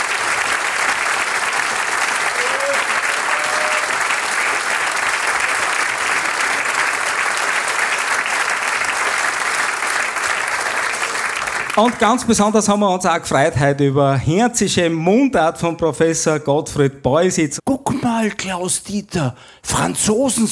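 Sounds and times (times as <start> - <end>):
audience applause: 0.0 - 12.2
speech: 11.8 - 20.5.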